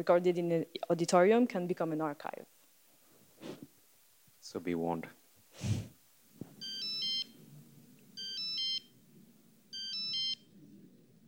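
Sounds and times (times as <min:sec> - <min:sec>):
speech: 0:00.0 - 0:02.5, 0:04.5 - 0:05.9
mobile phone ringtone: 0:06.6 - 0:07.4, 0:08.2 - 0:08.9, 0:09.7 - 0:10.4.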